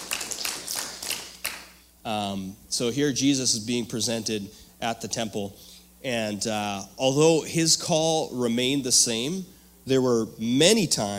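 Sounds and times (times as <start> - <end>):
light scattered applause: 0.0 - 1.7
speech: 2.0 - 11.1.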